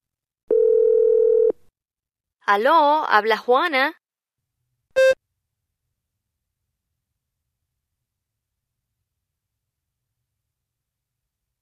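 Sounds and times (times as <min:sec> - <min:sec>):
telephone dial tone: 0:00.5 - 0:01.6
speech: 0:02.5 - 0:04.0.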